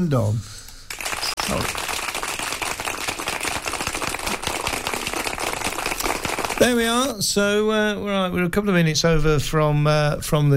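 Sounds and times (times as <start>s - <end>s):
speech: 0.0s - 0.6s, 1.5s - 1.9s, 6.6s - 10.5s
round of applause: 0.9s - 7.1s.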